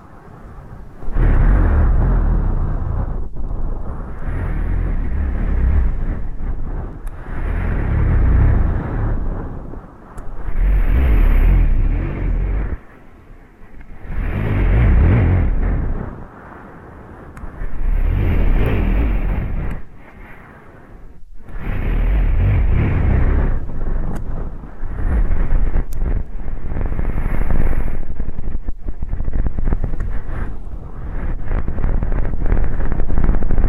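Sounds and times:
low rumble: 0.0s - 33.6s
deep ear canal cleaning muffled rubbing and scraping: 0.9s - 16.3s, 17.3s - 20.8s, 21.4s - 33.6s
faint crackly ticks: 3.2s - 12.9s, 13.7s - 15.6s, 17.3s - 20.3s, 23.6s - 27.6s, 28.4s - 33.6s.

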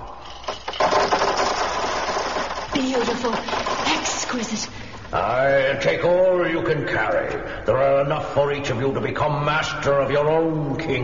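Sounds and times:
rubies poured out of a jar: 0.1s - 4.8s
speech: 2.8s - 11.0s.

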